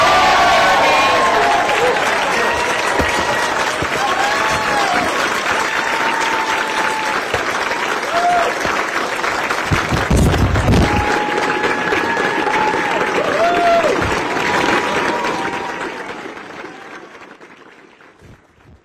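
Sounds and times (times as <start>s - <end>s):
whoops and shouts: 0.0s - 8.6s, 10.6s - 14.2s
large crowd applauding: 0.0s - 18.8s.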